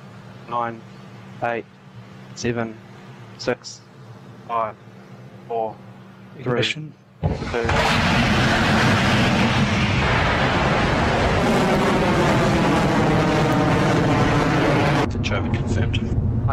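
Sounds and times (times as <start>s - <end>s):
speech: 0.5s - 1.8s, 2.4s - 3.9s, 4.5s - 4.9s, 5.5s - 8.7s, 15.3s - 16.5s
Rocket Lab Electron rocket liftoff roar on the ELaNa 19 mission: 7.2s - 16.5s.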